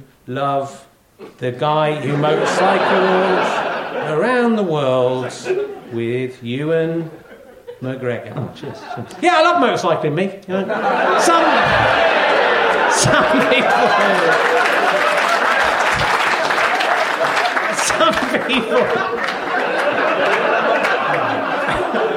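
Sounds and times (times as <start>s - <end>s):
speech: 0.3s - 7.2s, 7.8s - 12.2s, 12.9s - 14.5s, 18.1s - 19.4s
scattered chuckles and crowd chatter: 2.0s - 4.4s, 5.0s - 6.2s, 10.7s - 22.1s
large audience applause: 2.1s - 4.0s, 10.8s - 22.1s.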